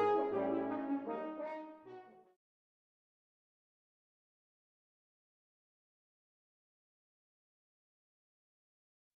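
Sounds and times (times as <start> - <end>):
horn quartet playing Jewish freilach melody: 0.0 - 2.2.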